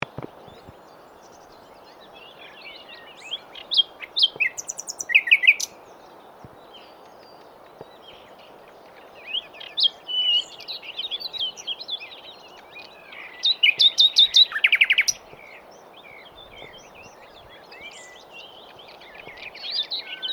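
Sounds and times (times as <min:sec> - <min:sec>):
birds twittering: 0:00.0 - 0:20.3
common nightingale singing: 0:00.0 - 0:20.3.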